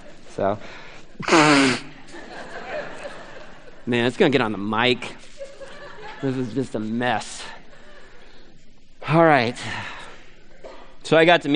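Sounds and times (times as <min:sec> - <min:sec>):
quiet hiss: 0:00.0 - 0:11.5
speech: 0:00.4 - 0:01.9, 0:03.9 - 0:05.2, 0:06.2 - 0:07.4, 0:09.1 - 0:09.9, 0:11.1 - 0:11.5
loud nose blowing: 0:01.2 - 0:02.0
laughter: 0:01.8 - 0:04.0, 0:05.1 - 0:06.9.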